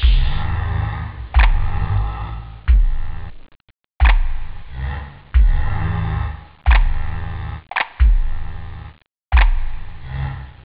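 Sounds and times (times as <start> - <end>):
house music: 0.0 - 3.4, 5.4 - 10.0.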